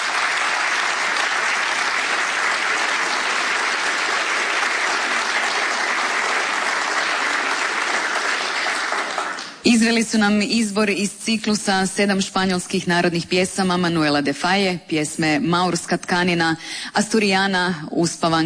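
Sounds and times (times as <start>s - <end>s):
audience applause after a classical recital of Spanish folk songs with guitar: 0.0s - 9.6s
speech: 9.7s - 18.4s.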